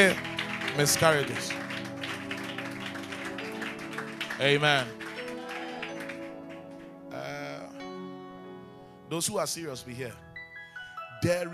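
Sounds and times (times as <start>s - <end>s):
speech: 0.0s - 1.6s, 4.4s - 5.0s, 9.1s - 10.2s, 11.2s - 11.5s
audience clapping: 0.0s - 7.1s.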